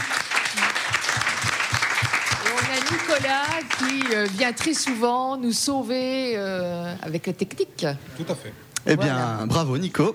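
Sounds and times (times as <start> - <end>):
audience applause: 0.0 - 5.0
speech: 3.1 - 10.1.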